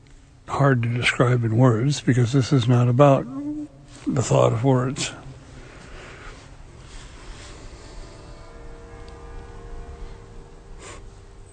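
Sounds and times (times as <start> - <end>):
speech: 0.5 - 5.2
city hall bells ringing: 4.2 - 11.5.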